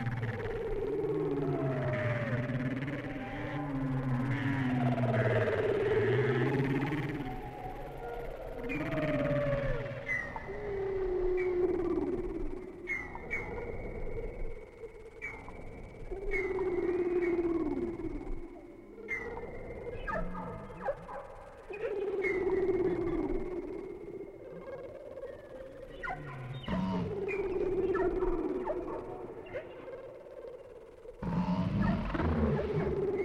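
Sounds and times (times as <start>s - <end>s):
whale song: 0.0s - 33.2s.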